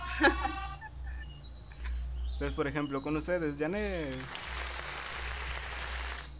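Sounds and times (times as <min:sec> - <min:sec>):
speech: 0:00.2 - 0:00.7, 0:02.4 - 0:04.5
played applause sound effect: 0:03.9 - 0:06.3.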